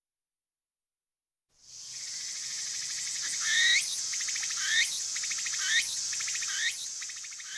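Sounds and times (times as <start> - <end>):
Japanese tree cricket trilling: 1.7 - 7.5.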